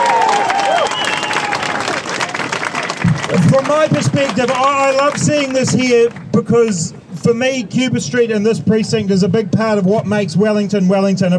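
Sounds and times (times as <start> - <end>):
crowd applause: 0.0 - 5.8
speech: 3.6 - 11.3.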